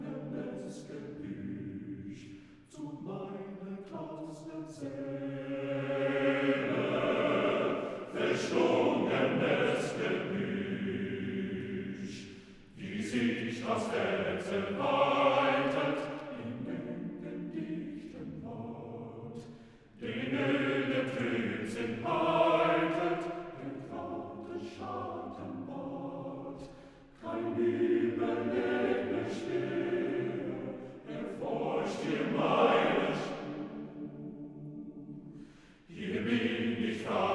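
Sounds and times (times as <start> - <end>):
quartet of unaccompanied male voices singing: 0.0 - 37.3.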